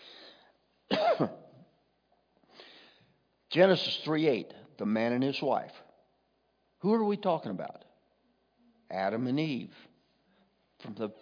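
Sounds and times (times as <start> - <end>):
person coughing after something went down the wrong pipe: 0.9 - 1.6
speech: 1.2 - 1.4, 3.6 - 5.8, 6.8 - 7.9, 8.9 - 9.9, 10.8 - 11.2.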